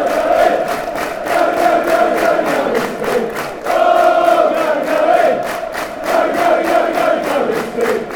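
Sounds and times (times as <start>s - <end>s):
clapping: 0.0s - 8.1s
people chanting: 0.0s - 8.1s.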